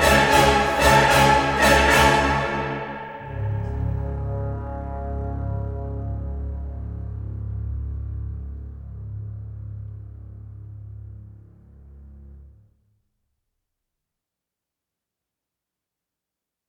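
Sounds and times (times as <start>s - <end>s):
epic choral action singing: 0.0s - 5.0s
orchestra playing epic action music: 0.0s - 7.2s.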